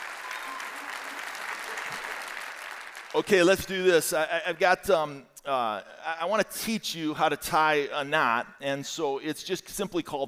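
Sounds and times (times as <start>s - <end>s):
church congregation applauding its pastor: 0.0s - 3.7s
speech: 3.1s - 10.2s.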